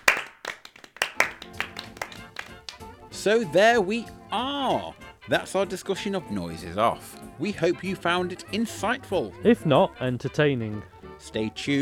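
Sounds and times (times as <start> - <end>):
slow hand claps: 0.0 - 3.2
speech: 3.2 - 11.8.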